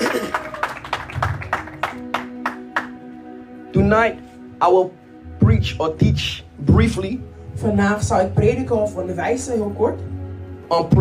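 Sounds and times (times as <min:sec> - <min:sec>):
church congregation clapping hands in praise of God: 0:00.0 - 0:03.0
speech: 0:03.8 - 0:10.1, 0:10.7 - 0:10.9.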